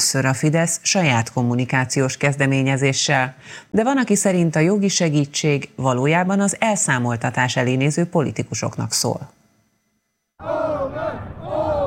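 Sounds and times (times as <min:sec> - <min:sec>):
speech: 0:00.1 - 0:09.4
crowd celebrating on Hungarian parliamentary election night: 0:10.4 - 0:11.8.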